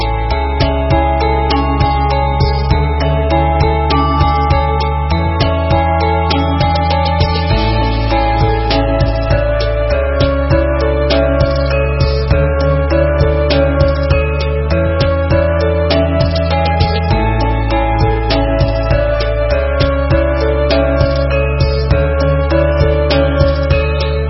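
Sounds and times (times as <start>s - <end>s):
Javanese gamelan beat: 0.0s - 24.2s.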